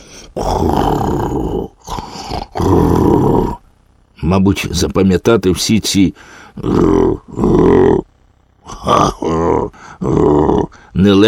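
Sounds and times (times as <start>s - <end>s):
voice imitating snoring: 0.0s - 3.7s, 6.4s - 11.2s
speech: 0.4s - 1.2s, 4.3s - 8.1s, 8.8s - 11.2s.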